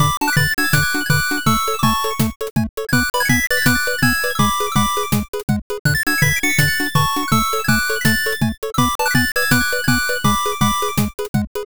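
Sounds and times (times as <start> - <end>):
bright background music: 0.0 - 11.4.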